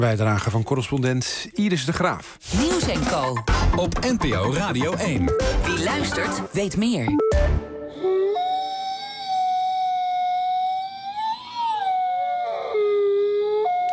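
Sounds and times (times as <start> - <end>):
speech: 0.0 - 7.6
wolf howling: 7.9 - 13.9.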